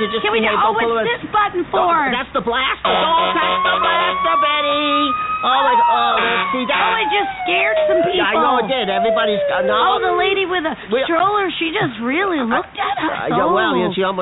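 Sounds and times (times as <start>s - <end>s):
speech: 0.0s - 14.2s
vehicle siren wailing: 2.8s - 10.6s.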